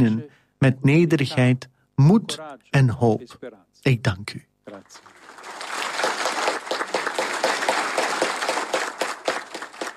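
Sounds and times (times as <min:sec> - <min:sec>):
speech: 0:00.0 - 0:05.1
applause from the cardinals: 0:04.7 - 0:09.9.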